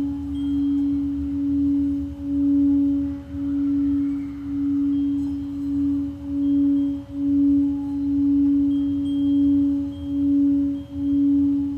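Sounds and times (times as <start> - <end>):
Tibetan singing bowl ringing: 0.0 - 11.7.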